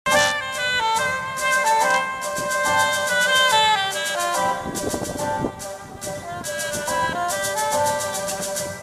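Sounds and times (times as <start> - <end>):
saxophone playing a bolero: 0.1 - 8.8.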